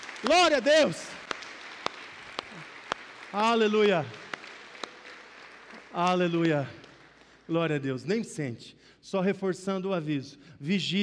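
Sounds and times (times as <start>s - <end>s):
sharp evenly spaced claps in a slow regular beat: 0.0s - 7.6s
audience applause: 0.0s - 7.8s
speech: 0.2s - 1.1s, 3.3s - 4.2s, 5.9s - 6.8s, 7.5s - 11.0s.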